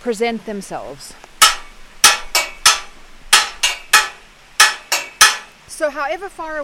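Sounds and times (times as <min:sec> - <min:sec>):
speech: 0:00.0 - 0:01.3, 0:05.8 - 0:06.6
clanks on a metal gate: 0:01.4 - 0:05.6.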